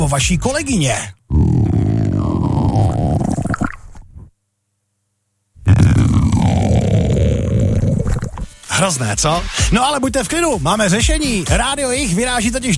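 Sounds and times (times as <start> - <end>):
speech: 0.0 - 1.4, 8.8 - 12.7
stomach rumbling: 1.3 - 4.3, 5.6 - 8.6.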